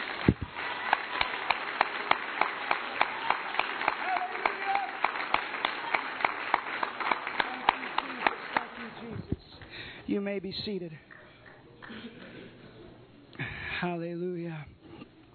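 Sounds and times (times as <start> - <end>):
seated audience clapping hands: 0.0 - 9.7
speech: 0.2 - 0.8, 10.1 - 11.1, 13.8 - 14.8.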